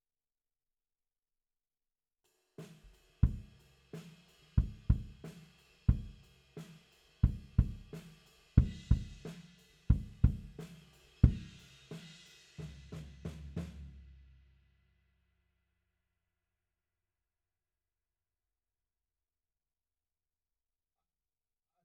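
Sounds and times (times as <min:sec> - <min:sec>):
bass drum: 0:03.2 - 0:03.6, 0:04.6 - 0:05.3, 0:05.9 - 0:06.2, 0:07.2 - 0:08.0, 0:08.6 - 0:11.7.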